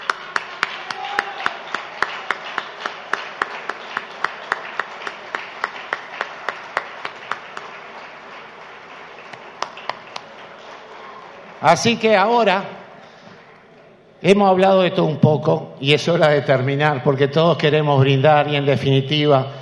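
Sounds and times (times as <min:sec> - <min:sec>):
audience applause: 0:00.0 - 0:13.6
speech: 0:11.6 - 0:12.8, 0:14.2 - 0:19.6.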